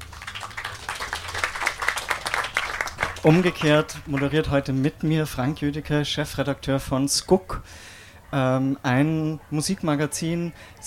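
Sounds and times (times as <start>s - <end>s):
small audience applause: 0.0s - 5.5s
speech: 3.2s - 10.8s.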